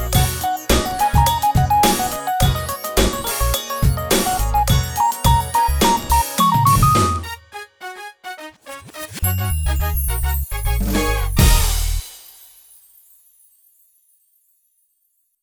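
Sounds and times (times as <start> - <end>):
groovy music: 0.0 - 12.3.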